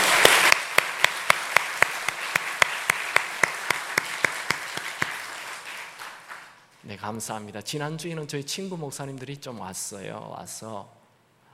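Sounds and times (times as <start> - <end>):
audience applause: 0.0 - 6.6
speech: 6.9 - 11.0.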